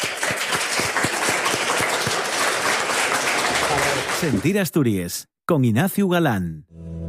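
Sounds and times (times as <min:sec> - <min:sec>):
crowd applause: 0:00.0 - 0:04.7
speech: 0:04.2 - 0:06.9.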